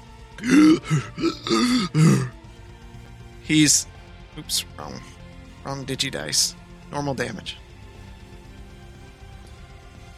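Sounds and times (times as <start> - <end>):
voice imitating someone choking after a throat hit: 0.4 - 2.3
speech: 0.4 - 2.4, 3.5 - 7.6.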